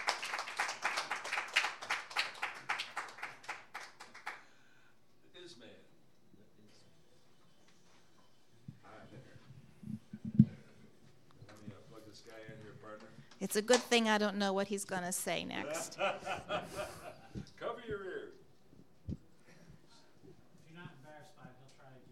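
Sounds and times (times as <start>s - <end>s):
audience clapping to welcome a music duo: 0.0s - 4.5s
speech: 12.9s - 16.9s
laughter: 15.6s - 17.6s.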